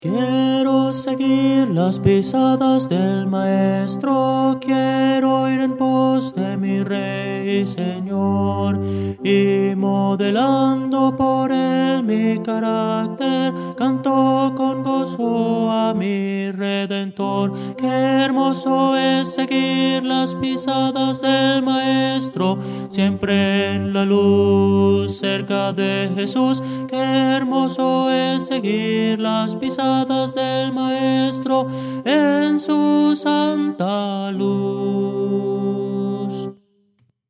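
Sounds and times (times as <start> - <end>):
tenor singing: 0.0 - 36.6.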